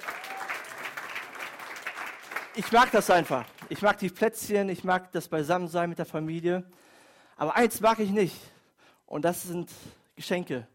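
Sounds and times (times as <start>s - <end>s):
audience applause: 0.0s - 3.9s
speech: 2.6s - 6.8s, 7.4s - 8.5s, 9.1s - 10.7s.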